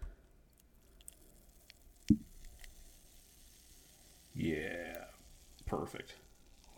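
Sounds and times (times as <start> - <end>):
beer pouring: 0.5 - 6.7
beer fizzing hiss: 1.3 - 6.7
soft low glug of pouring beer: 2.1 - 2.6
speech: 5.8 - 6.3.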